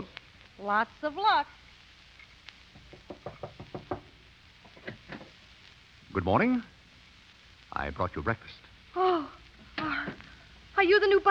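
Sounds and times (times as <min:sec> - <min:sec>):
speech: 0:00.0 - 0:01.6, 0:06.2 - 0:06.7, 0:07.8 - 0:09.4, 0:10.8 - 0:11.2
knocking on a door: 0:02.8 - 0:04.2.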